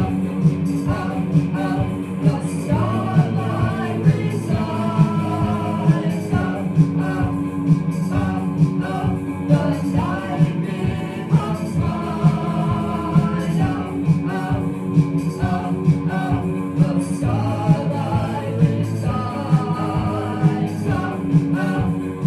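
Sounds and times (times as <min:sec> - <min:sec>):
ghost noise: 0:00.0 - 0:22.2.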